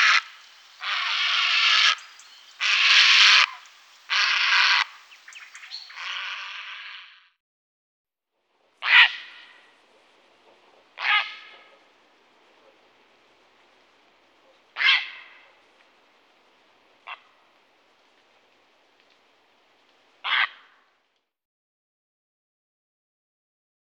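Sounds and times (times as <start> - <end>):
grey heron giving harsh grating clacking calls: 0.0 - 6.4, 8.8 - 17.5, 20.2 - 20.8.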